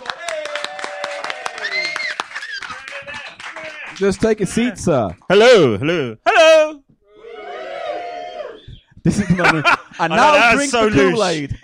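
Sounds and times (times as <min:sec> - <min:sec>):
audience clapping hands: 0:00.0 - 0:05.5
speech: 0:04.0 - 0:06.2, 0:09.0 - 0:11.6
laughter: 0:09.0 - 0:11.6.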